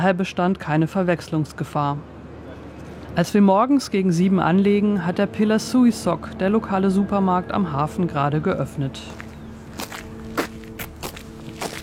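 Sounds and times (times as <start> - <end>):
speech: 0.0 - 2.2, 3.2 - 9.2
footsteps walking up a street on a windy, drizzly morning: 8.9 - 11.8.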